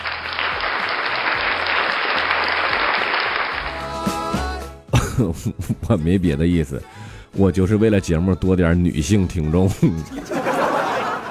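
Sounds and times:
applause: 0:00.0 - 0:04.2
laughter: 0:05.0 - 0:05.8, 0:10.1 - 0:11.2
speech: 0:05.2 - 0:10.4.

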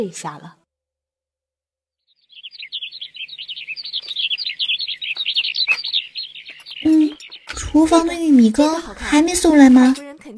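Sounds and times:
speech: 0:00.0 - 0:00.6, 0:07.7 - 0:10.3
birds chirping at night: 0:02.0 - 0:10.3
rustles: 0:02.3 - 0:08.2.

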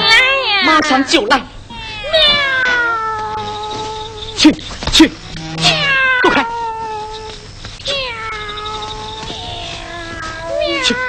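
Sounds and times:
cat meowing: 0:00.0 - 0:04.2, 0:05.6 - 0:11.0
speech: 0:00.7 - 0:02.4, 0:04.4 - 0:05.8.

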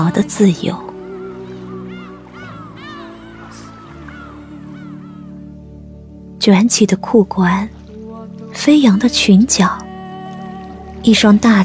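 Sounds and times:
speech: 0:00.0 - 0:00.9, 0:06.4 - 0:07.8, 0:08.5 - 0:09.8, 0:11.0 - 0:11.6
seagulls calling over the sea: 0:00.0 - 0:06.2.

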